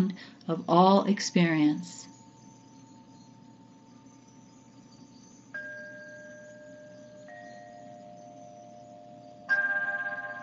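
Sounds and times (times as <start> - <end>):
speech: 0.0 - 2.1
bells ringing: 5.6 - 10.4.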